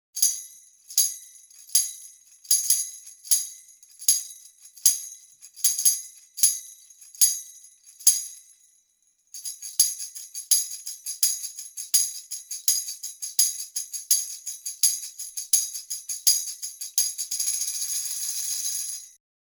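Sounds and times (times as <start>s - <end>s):
jingle ring: 0.2s - 8.8s, 9.4s - 19.2s.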